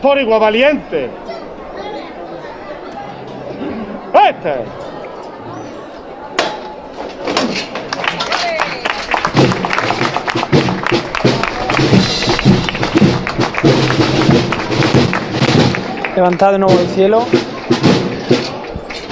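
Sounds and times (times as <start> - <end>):
speech: 0.0 - 1.3, 4.2 - 4.9, 16.2 - 18.0
street crowd applauding a procession in calle Cerón: 7.6 - 19.0.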